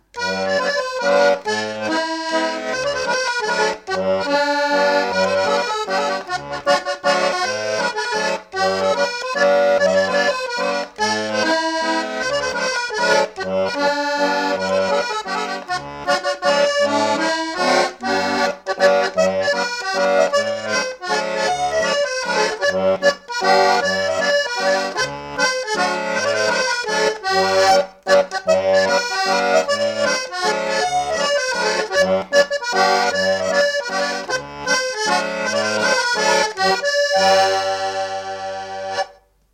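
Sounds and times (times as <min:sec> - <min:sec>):
mazurka: 0:00.0 - 0:39.2.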